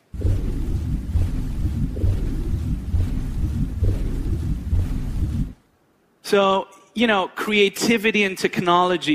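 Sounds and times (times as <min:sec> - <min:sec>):
looped low rumble of submarine interior: 0:00.0 - 0:05.7
speech: 0:06.3 - 0:09.1.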